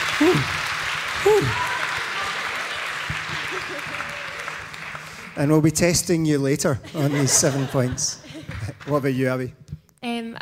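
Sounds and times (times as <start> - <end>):
round of applause: 0.0 - 6.3
speech: 0.2 - 1.7, 5.4 - 8.2, 8.8 - 9.6
laughter: 1.2 - 4.6, 6.6 - 9.4.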